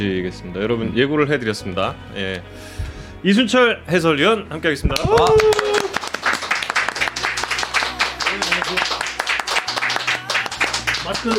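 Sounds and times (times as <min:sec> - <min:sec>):
speech: 0:00.0 - 0:05.6
standing ovation applause from a group: 0:05.0 - 0:11.3.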